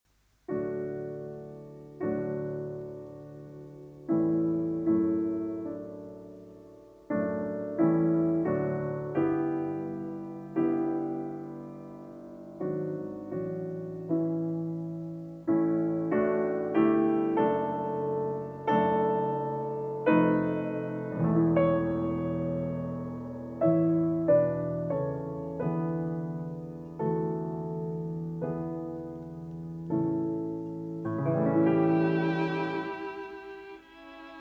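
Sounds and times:
piano trio slow movement: 0.1s - 34.3s.

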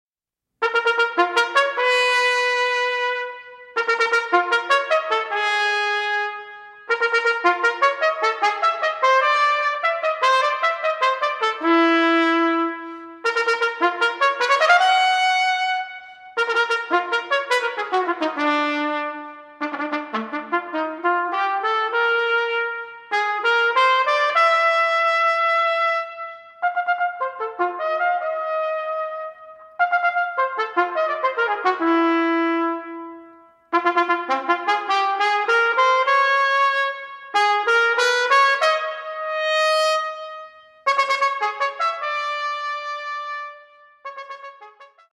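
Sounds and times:
unaccompanied solo trumpet suite: 0.6s - 45.1s.

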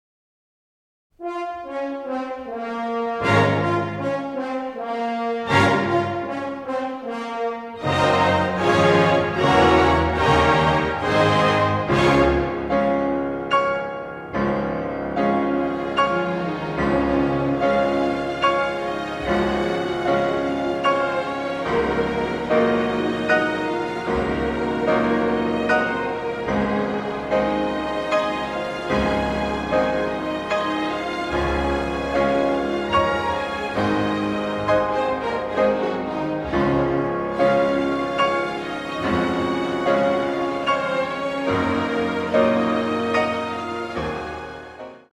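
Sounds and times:
piano concerto in B-flat minor: 1.2s - 45.1s.

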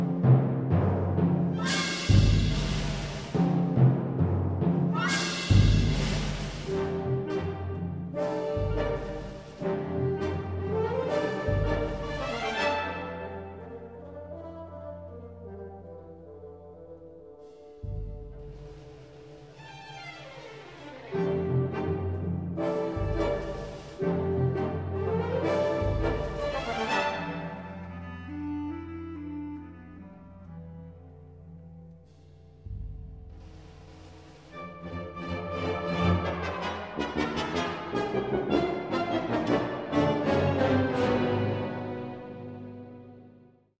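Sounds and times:
piano concerto first movement allegro in F major: 0.2s - 3.7s, 4.8s - 32.4s, 33.4s - 43.4s.

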